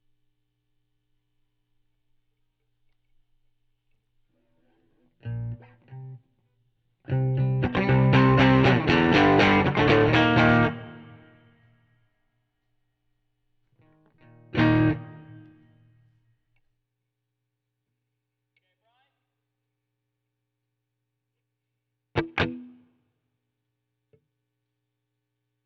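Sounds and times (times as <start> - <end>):
guitar: 4.4 - 12.0, 13.8 - 16.2, 22.1 - 23.0.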